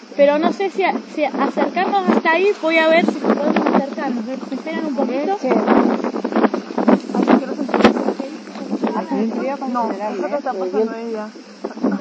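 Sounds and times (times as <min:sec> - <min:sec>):
wind buffeting a microphone outdoors: 0:00.0 - 0:11.9
speech: 0:00.2 - 0:03.2, 0:04.0 - 0:06.1, 0:09.1 - 0:11.5.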